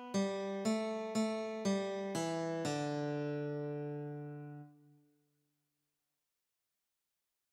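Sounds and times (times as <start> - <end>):
guitar playing a spiritual: 0.1 - 4.7.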